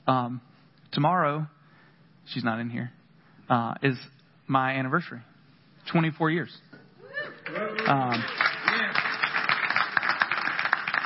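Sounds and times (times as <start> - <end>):
speech: 0.1 - 1.6, 2.3 - 5.3, 5.9 - 6.7, 7.5 - 8.4
voices whooping and cheering: 7.0 - 9.0
audience applause: 7.5 - 11.0.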